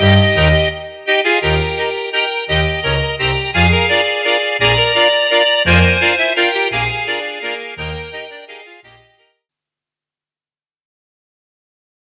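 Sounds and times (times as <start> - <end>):
waltz music: 0.0 - 9.1.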